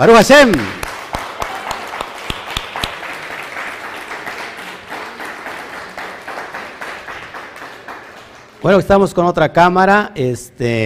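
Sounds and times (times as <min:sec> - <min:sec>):
speech: 0:00.0 - 0:00.8, 0:08.6 - 0:10.8
loud applause: 0:00.4 - 0:08.9.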